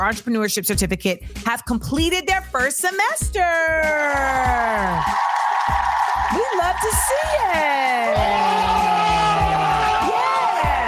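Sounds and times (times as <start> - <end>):
speech: 0.0 - 9.6
group of men cheering and shouting: 4.0 - 10.8.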